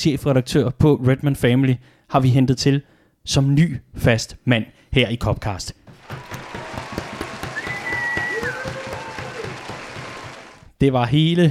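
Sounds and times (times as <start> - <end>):
speech: 0.0 - 6.2, 10.8 - 11.4
crowd applauding: 5.9 - 10.7
faint whistles: 7.4 - 8.9.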